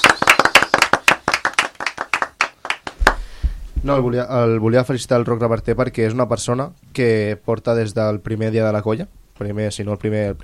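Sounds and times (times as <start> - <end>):
people clapping: 0.0 - 3.3
speech: 3.8 - 10.4.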